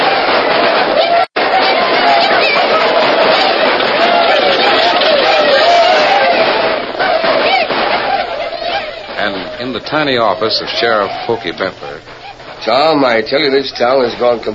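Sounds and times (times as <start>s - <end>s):
roaring crowd of a gold-rush boom camp: 0.0s - 14.5s
laughter: 1.0s - 14.4s
speech: 9.9s - 14.5s.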